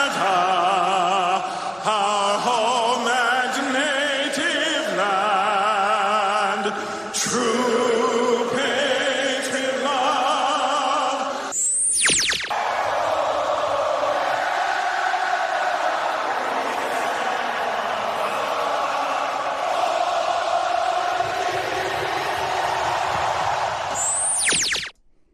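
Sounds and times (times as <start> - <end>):
large arena crowd singing a national anthem: 0.0 - 11.5, 12.6 - 23.9
large arena crowd cheering: 12.5 - 24.9.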